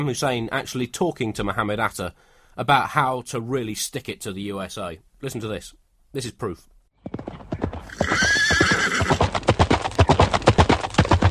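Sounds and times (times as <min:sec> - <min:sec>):
speech: 0:00.0 - 0:07.3
clip-clop hoofbeats: 0:07.0 - 0:11.2
horse neighing: 0:07.8 - 0:09.2.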